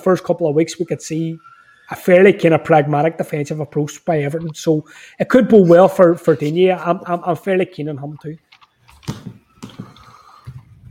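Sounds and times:
speech: 0.0s - 9.4s
squeaky creaking chair: 8.5s - 10.8s.

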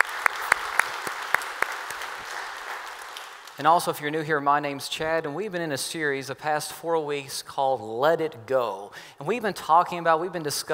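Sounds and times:
faint audience applause at a campus gathering: 0.0s - 3.6s
speech: 3.6s - 10.7s.

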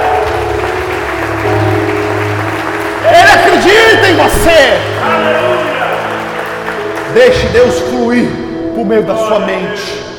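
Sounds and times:
audience applause: 0.0s - 8.0s
speech: 7.2s - 10.1s.

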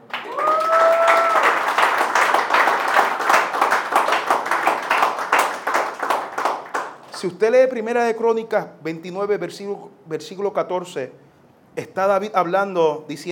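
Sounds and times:
audience applause: 0.0s - 7.1s
speech: 7.2s - 11.2s, 11.8s - 13.3s.

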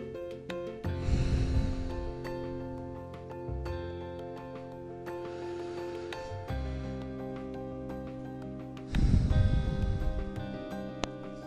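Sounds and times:
steady sustained tonal background: 0.0s - 11.4s
slow breaths exhaled through the mouth in a calm breathing exercise: 1.0s - 2.6s, 8.8s - 10.3s.

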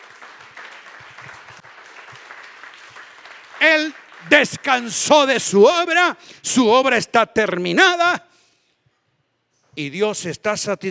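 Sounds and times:
audience applause: 0.0s - 5.5s
speech: 3.6s - 8.3s, 9.8s - 10.8s.

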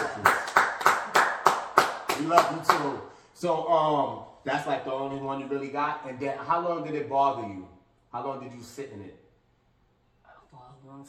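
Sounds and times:
hands clapping: 0.0s - 3.0s
speech: 2.3s - 9.2s, 10.8s - 11.0s.

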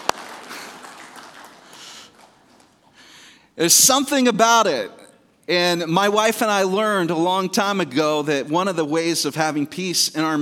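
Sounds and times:
audience applause: 0.0s - 2.8s
speech: 3.6s - 10.3s.

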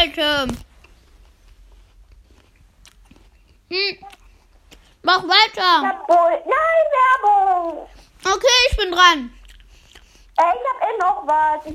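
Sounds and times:
person eating an apple: 0.8s - 5.0s, 9.3s - 10.4s
speech: 5.1s - 9.4s, 10.4s - 11.7s.

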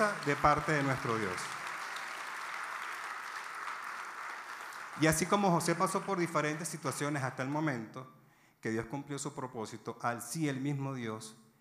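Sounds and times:
speech: 0.0s - 1.6s, 5.0s - 11.4s
audience applauding: 0.0s - 7.6s.

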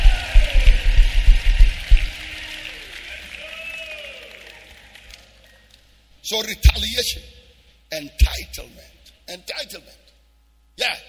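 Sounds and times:
audience clapping: 0.0s - 6.0s
speech: 6.3s - 10.0s, 10.8s - 11.0s.

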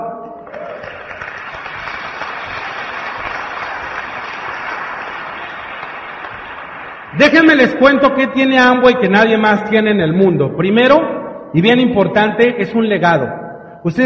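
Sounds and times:
audience applause: 0.4s - 7.2s
speech: 7.2s - 14.0s.

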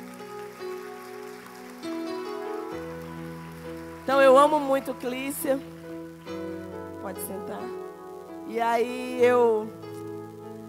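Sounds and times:
audience applause: 0.0s - 6.8s
speech: 4.1s - 5.7s, 7.1s - 7.8s, 8.5s - 9.8s.

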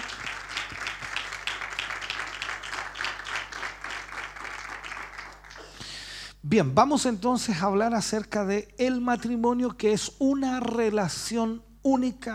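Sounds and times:
audience applause: 0.0s - 5.8s
speech: 6.5s - 12.3s.

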